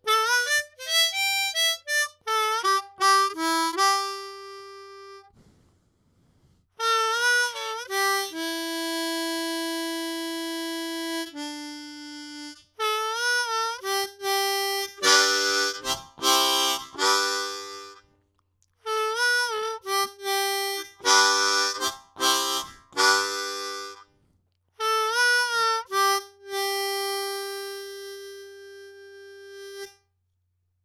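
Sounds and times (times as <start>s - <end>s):
blues music recorded with a Shure SM57: 0.0s - 5.3s, 6.8s - 18.1s, 18.8s - 24.1s, 24.8s - 30.0s.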